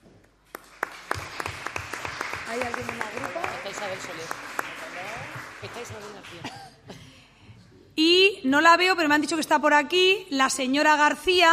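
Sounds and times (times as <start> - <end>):
audience clapping: 0.4 - 6.8
speech: 2.5 - 6.7, 8.0 - 11.5.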